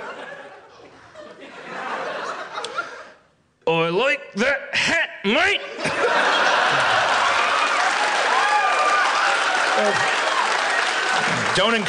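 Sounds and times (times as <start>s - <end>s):
laughter: 0.0s - 3.2s, 5.6s - 8.2s
speech: 3.7s - 5.6s, 11.6s - 11.8s
audience applause: 6.2s - 11.8s
faint voices and cheers: 7.2s - 11.8s.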